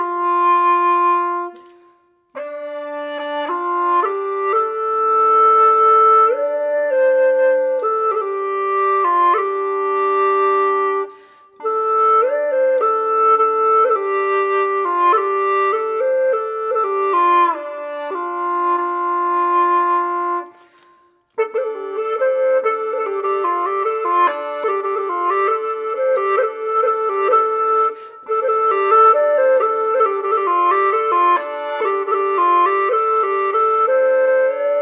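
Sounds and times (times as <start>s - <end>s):
hulusi solo: 0.0s - 34.7s.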